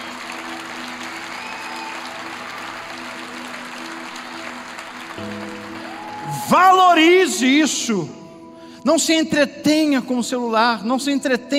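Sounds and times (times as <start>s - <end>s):
audience applauding: 0.0s - 7.4s
speech: 6.5s - 8.2s, 8.8s - 11.5s.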